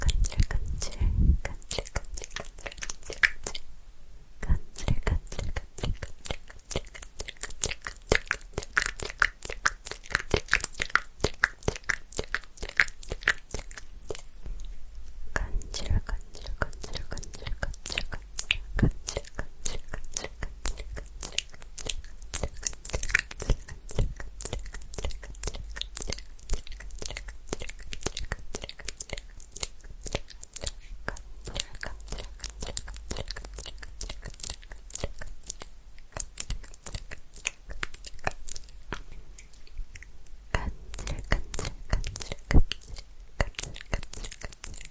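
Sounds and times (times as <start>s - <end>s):
mouth sounds rubbed and tapped on a pin mic: 0.0s - 3.7s, 4.4s - 44.8s.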